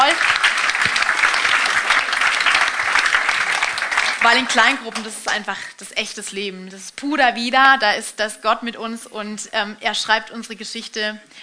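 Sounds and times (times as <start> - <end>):
audience applause: 0.0 - 5.4
speech: 4.2 - 11.4.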